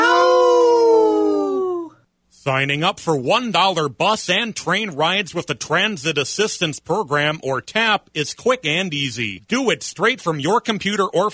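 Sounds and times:
wolf howling: 0.0s - 1.9s
speech: 2.4s - 11.3s.

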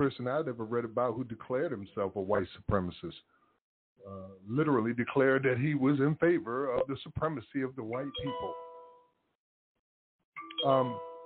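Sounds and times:
speech: 0.0s - 3.4s, 4.0s - 8.6s, 10.6s - 11.1s
phone text message notification chime: 8.0s - 9.0s, 10.4s - 11.2s.

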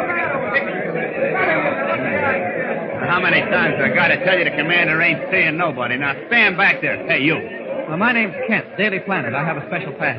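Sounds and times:
crowd milling and chattering: 0.0s - 10.1s
laughter: 0.0s - 10.1s
speech: 3.2s - 10.1s.

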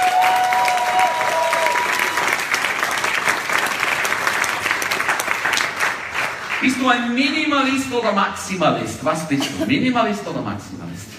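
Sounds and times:
audience clapping: 0.0s - 7.4s
speech: 6.7s - 11.1s.

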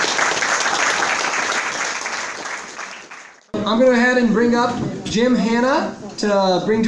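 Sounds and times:
audience applause: 0.0s - 3.5s
speech: 3.7s - 6.8s.

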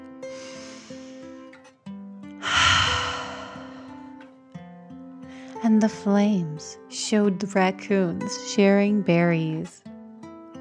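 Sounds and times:
voice acting out a deep dragon breath: 0.3s - 1.4s, 2.4s - 4.2s
speech: 5.7s - 9.8s.

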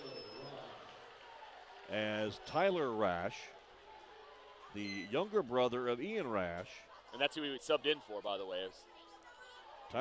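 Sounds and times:
crowd clapping in an indoor gym: 0.0s - 6.5s
murmur of voices: 0.0s - 9.9s
speech: 1.9s - 3.6s, 4.7s - 8.9s.

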